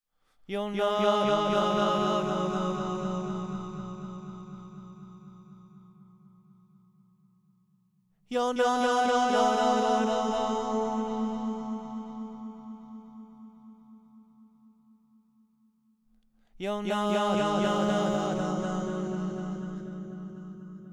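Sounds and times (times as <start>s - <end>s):
person singing: 0.5s - 4.9s, 8.3s - 13.0s, 16.6s - 20.9s.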